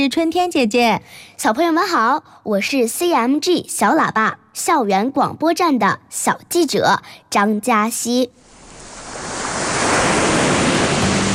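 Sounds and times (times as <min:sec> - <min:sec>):
speech: 0:00.0 - 0:08.4
sea waves hitting rocks: 0:08.4 - 0:11.3.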